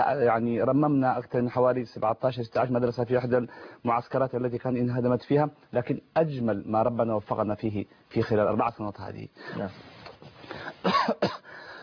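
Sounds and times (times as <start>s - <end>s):
speech: 0.0s - 11.7s
tired man just back from the Hajj coughing: 10.8s - 11.6s.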